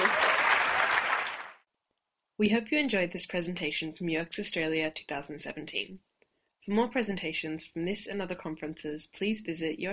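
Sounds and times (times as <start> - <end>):
audience applause: 0.0 - 1.6
speech: 2.4 - 9.9.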